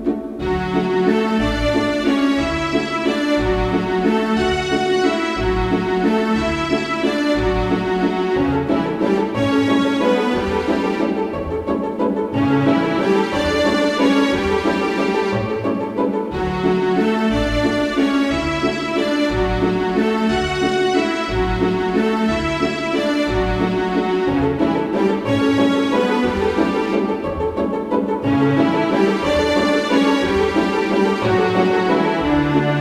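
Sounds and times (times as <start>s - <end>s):
violins playing a Viennese waltz: 0.0s - 32.8s.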